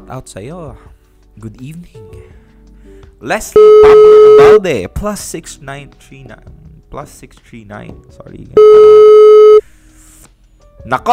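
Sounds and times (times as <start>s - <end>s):
speech: 0.1s - 2.4s, 3.2s - 9.2s, 10.8s - 11.1s
telephone ringback tone: 3.6s - 4.6s, 8.6s - 9.6s.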